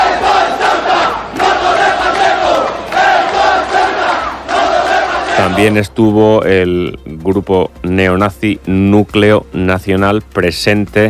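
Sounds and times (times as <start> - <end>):
protest crowd chanting slogans: 0.0 - 5.8
speech: 5.6 - 11.0.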